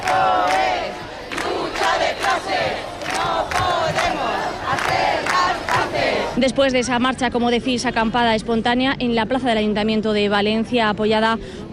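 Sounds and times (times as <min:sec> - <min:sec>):
large protest crowd chanting slogans: 0:00.0 - 0:06.4
speech: 0:06.4 - 0:11.7.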